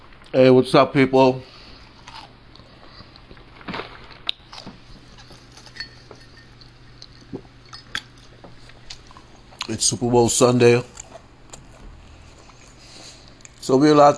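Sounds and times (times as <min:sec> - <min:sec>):
low steady hum: 0:00.0 - 0:14.1
speech: 0:00.3 - 0:01.5, 0:09.8 - 0:11.0, 0:13.7 - 0:14.1
wet chewing of a chicken sandwich: 0:01.8 - 0:09.8, 0:10.8 - 0:13.6.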